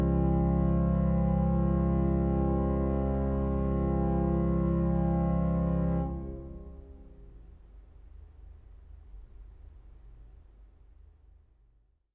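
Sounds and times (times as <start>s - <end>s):
organ fantasia: 0.0s - 6.8s.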